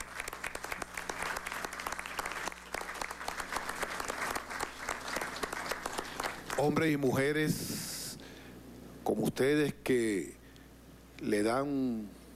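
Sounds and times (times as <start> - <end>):
crowd applause: 0.0 - 6.7
faint low hum: 0.0 - 12.3
speech: 6.6 - 7.9, 9.2 - 10.4, 11.2 - 12.2.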